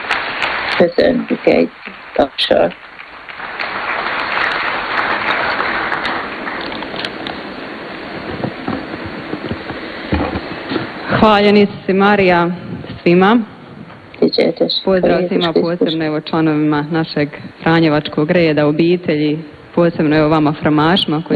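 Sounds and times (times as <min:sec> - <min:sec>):
audience clapping at a Franciscan gathering: 0:00.0 - 0:11.4
speech: 0:00.8 - 0:02.9, 0:11.2 - 0:13.5, 0:14.2 - 0:21.3.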